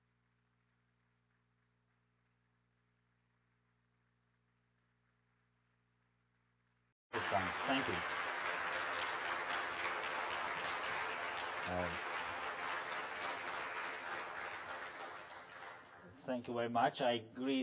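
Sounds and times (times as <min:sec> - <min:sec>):
church congregation applauding to welcome their pastor: 0:07.1 - 0:16.6
speech: 0:07.3 - 0:08.2, 0:11.7 - 0:12.1, 0:16.3 - 0:17.6.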